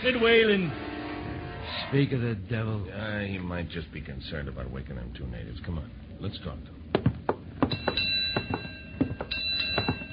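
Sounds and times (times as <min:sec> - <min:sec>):
speech: 0:00.0 - 0:00.8, 0:01.7 - 0:06.8
dull clunks and knocks: 0:06.9 - 0:10.1
ship's bell striking four bells: 0:07.6 - 0:10.1.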